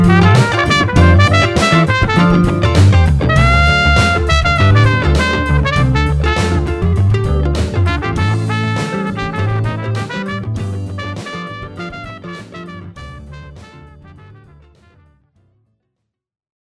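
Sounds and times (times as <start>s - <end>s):
solo trumpet playing a funk blues solo: 0.0s - 7.1s, 7.8s - 14.7s.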